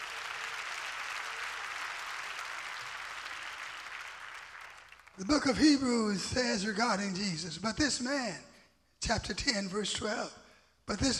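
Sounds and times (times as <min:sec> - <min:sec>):
audience clapping hands: 0:00.0 - 0:05.5
speech: 0:05.2 - 0:11.1.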